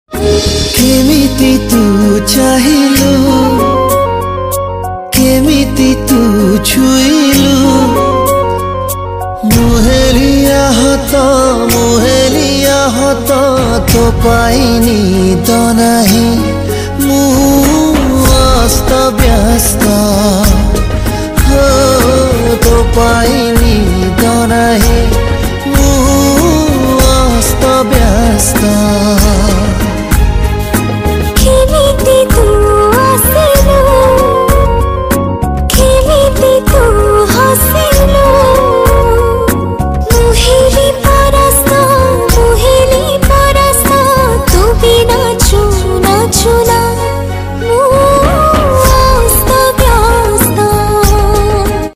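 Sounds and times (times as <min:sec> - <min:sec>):
Odia romantic song: 0:00.0 - 0:51.9.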